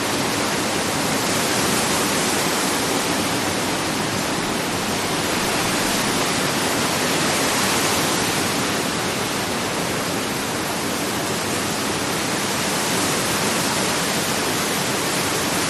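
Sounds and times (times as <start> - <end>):
constant wind with some gusts in palm trees: 0.0 - 15.6.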